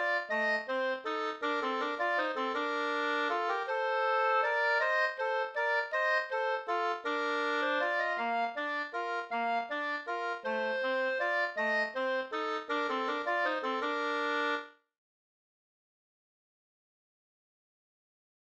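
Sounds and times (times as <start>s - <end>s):
waltz music: 0.0s - 14.6s.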